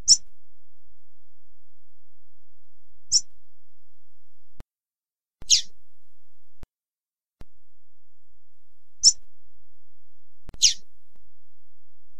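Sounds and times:
double-collared seedeater high thin chirps: 0:00.0 - 0:00.3, 0:05.4 - 0:05.7, 0:10.6 - 0:10.8.

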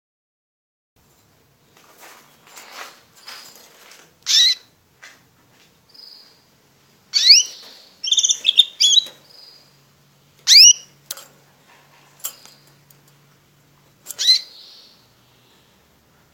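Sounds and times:
Border canary singing: 0:04.2 - 0:04.7, 0:05.9 - 0:16.0.

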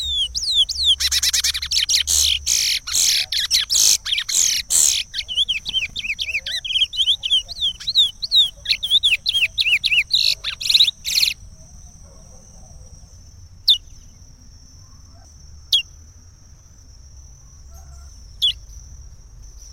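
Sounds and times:
chestnut-bellied seed finch singing: 0:00.0 - 0:11.4, 0:18.4 - 0:18.6.

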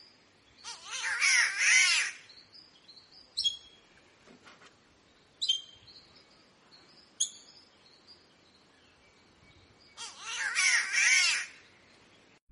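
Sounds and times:
other birds chirping: 0:00.0 - 0:12.4
green catbird cat-like wail: 0:00.6 - 0:02.2, 0:10.0 - 0:11.6.

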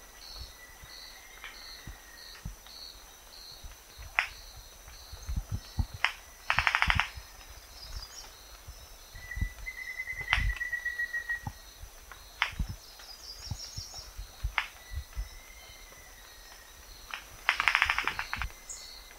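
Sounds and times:
steady high insect hum: 0:00.0 - 0:19.1
Rufous-vented ground cuckoo bill clapping: 0:05.8 - 0:07.2, 0:09.6 - 0:13.1, 0:16.5 - 0:18.5
thin whistles: 0:09.2 - 0:11.6.

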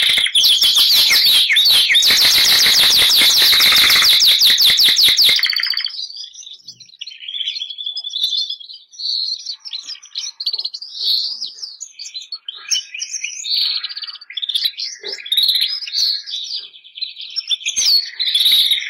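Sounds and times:
Bernois canary singing: 0:00.0 - 0:18.8.

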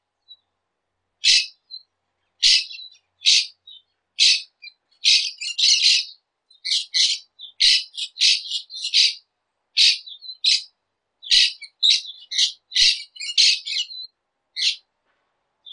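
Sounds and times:
green parakeet singing: 0:02.4 - 0:03.5, 0:04.2 - 0:06.1, 0:06.7 - 0:09.2, 0:09.8 - 0:10.7, 0:11.3 - 0:14.0.

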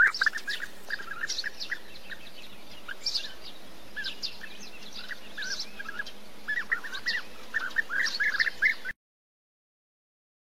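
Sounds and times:
European bee-eater calls: 0:00.0 - 0:08.9.

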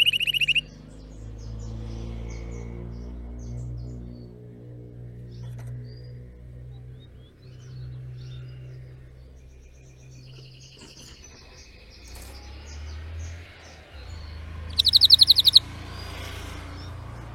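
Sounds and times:
Spanish Timbrado canary song: 0:00.0 - 0:04.6, 0:05.2 - 0:17.3.

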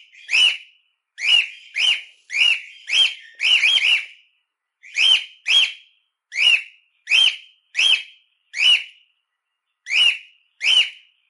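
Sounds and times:
harlequin pied cockatiel giving short whistled chirps: 0:00.1 - 0:04.2, 0:04.8 - 0:09.0, 0:09.8 - 0:11.1.

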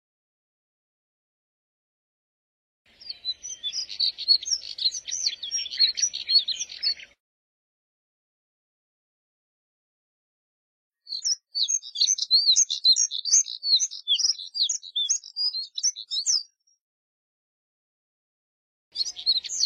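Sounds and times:
Moussier's redstart twittering warble: 0:02.9 - 0:07.2, 0:11.1 - 0:16.6, 0:19.0 - 0:19.6.

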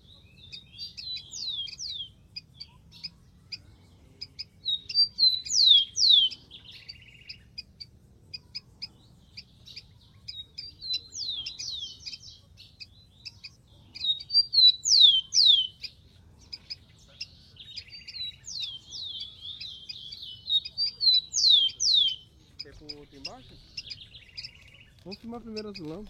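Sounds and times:
rufous-collared sparrow singing: 0:00.0 - 0:03.6, 0:04.2 - 0:26.0
other birds chipping: 0:00.0 - 0:26.0
speech: 0:25.3 - 0:26.0.

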